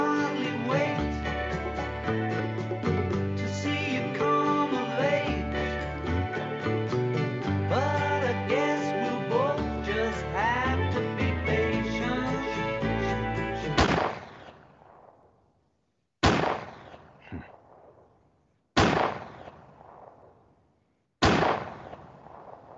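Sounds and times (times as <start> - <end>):
music: 0.0 - 13.9
recorded gunshots: 13.8 - 15.4, 16.2 - 18.1, 18.8 - 20.5, 21.2 - 22.7.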